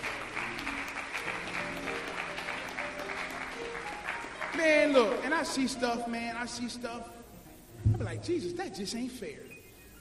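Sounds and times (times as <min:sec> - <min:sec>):
audience clapping hands: 0:00.0 - 0:05.8
speech: 0:04.6 - 0:07.2, 0:08.0 - 0:09.5.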